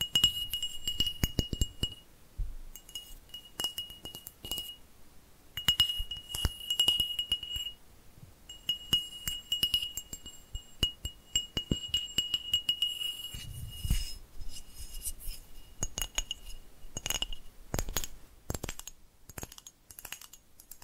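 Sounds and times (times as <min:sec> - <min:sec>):
light glassy tapping clicks and clinks: 0:00.0 - 0:02.0, 0:02.7 - 0:04.8, 0:05.5 - 0:07.8, 0:08.5 - 0:20.8
thin high ringing tone: 0:00.0 - 0:02.1, 0:02.7 - 0:04.9, 0:05.6 - 0:07.8, 0:08.5 - 0:17.5
soft low thumps: 0:02.4 - 0:02.8.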